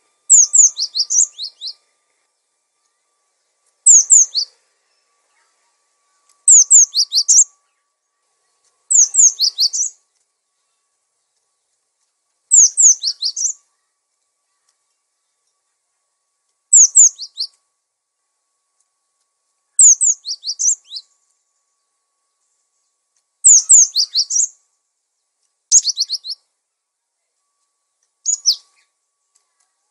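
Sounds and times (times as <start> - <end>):
songbird twittering: 0.0 - 10.0, 12.5 - 15.6, 16.7 - 17.6, 19.7 - 24.6, 25.7 - 26.5, 28.2 - 29.0.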